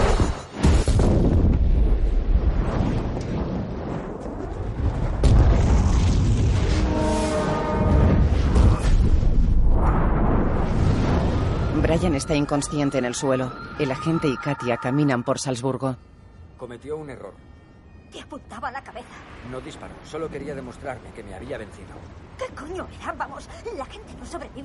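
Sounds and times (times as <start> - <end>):
turbine exploding in the action thriller Hitman Agent 47: 0.0 - 12.4
speech: 12.1 - 17.5, 18.1 - 24.6.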